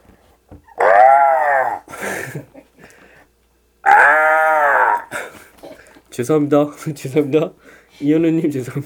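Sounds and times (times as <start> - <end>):
human voice imitating crow caws: 0.7 - 1.9, 3.8 - 5.3
speech: 6.2 - 8.8.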